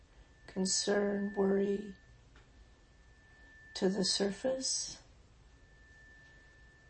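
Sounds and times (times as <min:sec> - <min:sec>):
meditation chime ringing: 0:00.0 - 0:06.8
speech: 0:00.5 - 0:02.0, 0:03.8 - 0:05.0.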